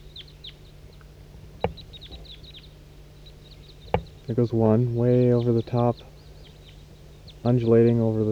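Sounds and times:
flock of birds calling: 0.0s - 8.3s
low steady hum: 0.0s - 8.3s
dull thump: 1.1s - 2.5s, 3.8s - 4.8s
speech: 4.3s - 6.1s, 7.4s - 8.3s.

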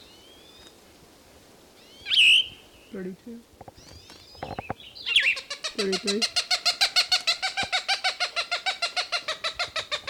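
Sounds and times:
speech: 2.9s - 3.9s, 5.8s - 6.4s
excited Cooper's Hawk cackling near a nest: 5.1s - 10.0s.

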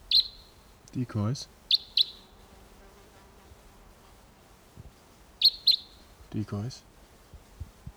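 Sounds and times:
wild bird calling: 0.0s - 2.9s, 5.2s - 7.2s
speech: 0.9s - 1.6s, 6.3s - 6.9s.

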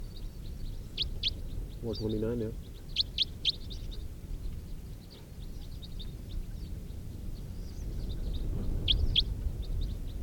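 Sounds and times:
wild birds calling as they fly over: 0.2s - 10.2s
speech: 1.8s - 2.7s.

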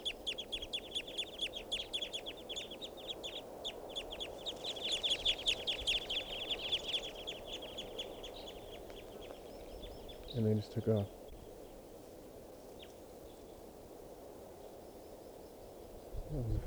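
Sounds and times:
flock of wild birds calling: 0.0s - 13.7s
speech: 10.4s - 11.2s.

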